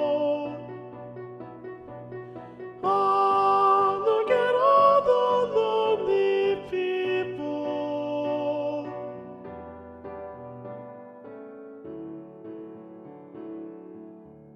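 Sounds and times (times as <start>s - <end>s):
alto section of SATB choir singing: 0.0s - 9.5s.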